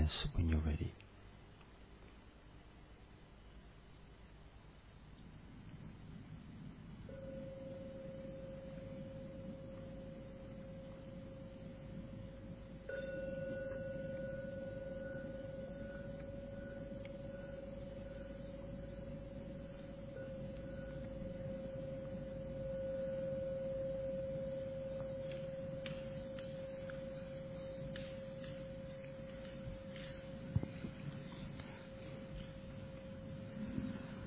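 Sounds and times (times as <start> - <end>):
speech: 0.1 - 1.1
gong ringing: 7.1 - 34.1.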